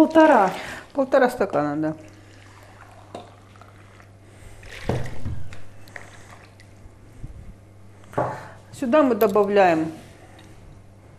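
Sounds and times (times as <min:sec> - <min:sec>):
speech: 0:00.0 - 0:02.1, 0:08.2 - 0:10.0
warm water being poured: 0:00.0 - 0:06.7
steady low electrical hum: 0:00.0 - 0:11.1.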